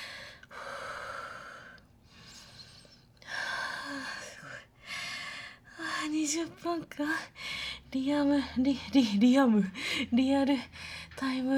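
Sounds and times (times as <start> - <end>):
speech: 6.3 - 11.5
heavy panting breath after exertion: 7.3 - 11.5.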